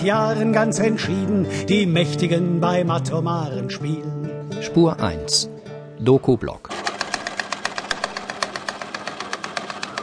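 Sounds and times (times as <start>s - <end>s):
speech: 0.0s - 6.8s
sewing machine running: 6.7s - 10.0s.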